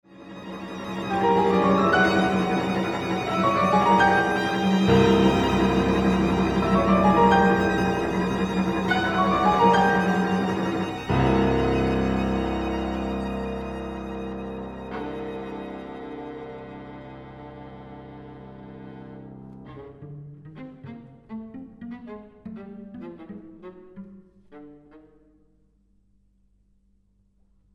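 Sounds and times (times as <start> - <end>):
piano quintet playing: 0.4 - 20.1.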